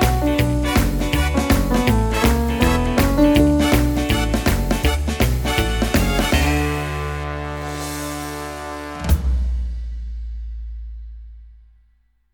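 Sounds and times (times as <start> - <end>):
rock and roll accompaniment: 0.0 - 9.5.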